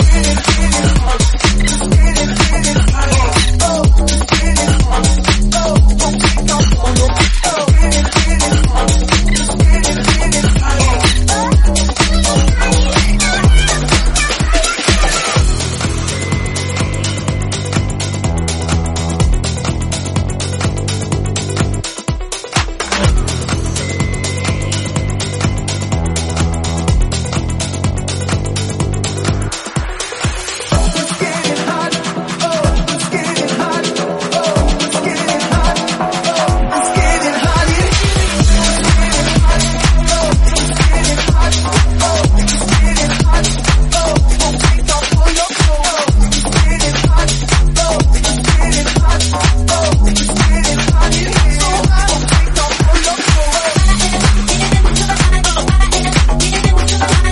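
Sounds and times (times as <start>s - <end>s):
house music at 125 bpm in E minor: 0.0s - 57.3s.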